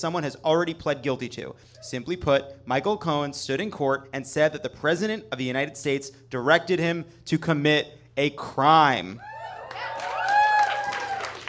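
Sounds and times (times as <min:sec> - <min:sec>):
speech: 0:00.0 - 0:09.9
studio audience cheering and clapping: 0:09.2 - 0:11.4.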